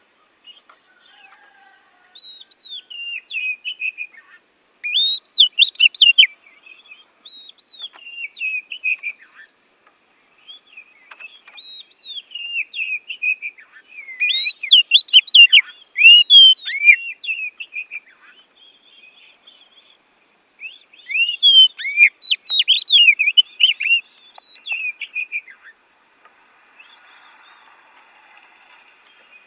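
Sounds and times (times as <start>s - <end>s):
faint high hum: 0.0s - 29.4s
Oriental magpie-robin singing: 2.3s - 6.3s, 11.5s - 19.2s, 20.6s - 25.8s.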